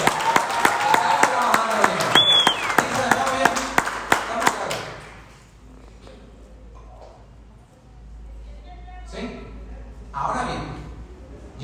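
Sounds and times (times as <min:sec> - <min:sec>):
applause: 0:00.0 - 0:05.4.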